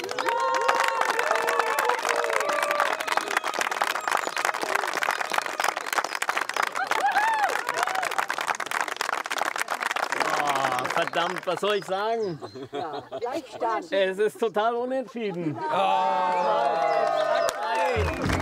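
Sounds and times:
crowd whooping and cheering: 0.0 - 8.4, 15.6 - 18.3
audience applause: 0.0 - 12.2, 15.7 - 18.3
laughter: 10.2 - 11.2, 12.0 - 18.3
speech: 11.1 - 18.3.

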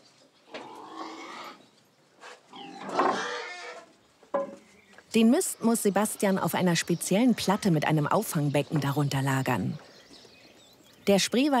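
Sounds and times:
pigs grunting and squealing on a farm: 0.6 - 1.6, 2.5 - 3.9
speech: 5.2 - 9.9, 11.1 - 11.5.

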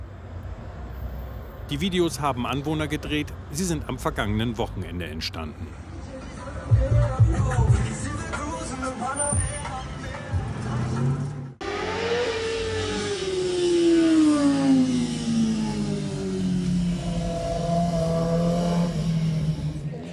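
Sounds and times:
car noise on a busy street at night: 0.0 - 20.1
speech: 1.7 - 5.9
loud engine revving past: 10.5 - 20.1
crowd chatter on a busy street at night: 18.6 - 20.1.

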